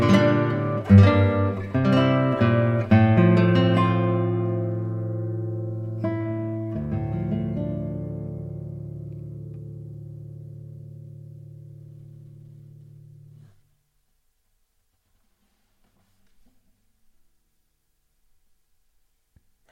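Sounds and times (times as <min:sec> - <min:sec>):
classical guitar recorded with a studio microphone: 0:00.0 - 0:13.7.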